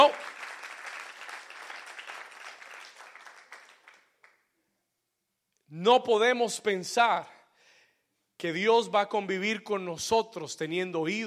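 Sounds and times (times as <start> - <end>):
audience applause: 0.0 - 4.4
speech: 5.7 - 7.3, 8.4 - 11.2.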